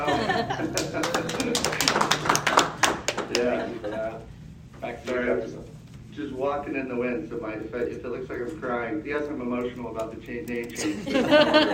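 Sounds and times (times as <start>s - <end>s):
speech: 0.0s - 1.8s, 5.0s - 11.7s
laughter: 0.0s - 2.5s, 3.3s - 4.3s, 10.8s - 11.7s
brief applause: 0.7s - 3.5s.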